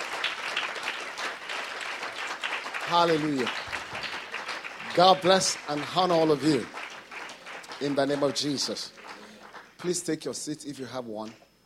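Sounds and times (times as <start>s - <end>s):
congregation clapping at a church service: 0.0s - 11.4s
speech: 2.9s - 3.6s, 5.0s - 6.8s, 7.8s - 9.0s, 9.8s - 11.4s.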